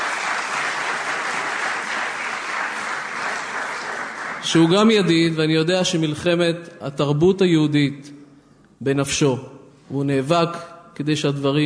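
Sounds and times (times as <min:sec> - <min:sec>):
audience applause at a public event: 0:00.0 - 0:04.9
speech: 0:04.4 - 0:08.2, 0:08.8 - 0:11.6.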